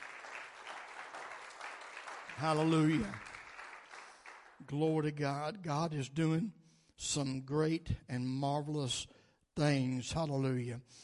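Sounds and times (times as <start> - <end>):
audience hand clapping: 0.0 - 4.9
speech: 2.4 - 3.3, 4.6 - 11.0.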